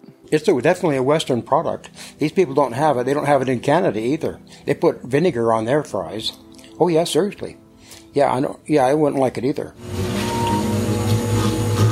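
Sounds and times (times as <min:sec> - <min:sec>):
speech: 0:00.3 - 0:10.1
milkshake machine whirring: 0:09.8 - 0:11.9.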